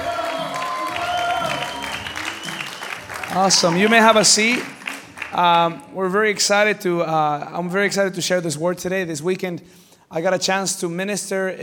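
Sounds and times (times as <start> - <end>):
audience round of applause: 0.0 - 5.4
speech: 3.4 - 4.8, 5.4 - 11.6.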